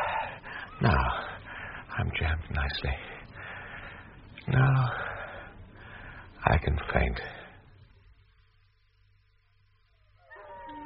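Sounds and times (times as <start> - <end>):
speech: 0.8 - 1.3, 2.0 - 3.2, 4.5 - 5.0, 6.4 - 7.4
tracking dogs howling and yelping: 10.2 - 10.8.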